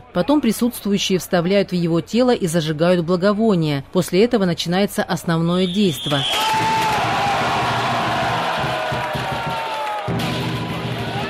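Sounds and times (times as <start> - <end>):
speech: 0.2 - 6.8
crowd of tens of thousands roaring and shouting: 6.2 - 11.2.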